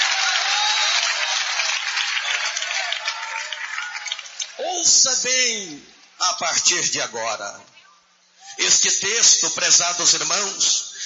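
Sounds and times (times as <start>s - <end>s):
audience applause: 0.0s - 4.7s
speech: 4.8s - 7.8s, 8.6s - 11.0s.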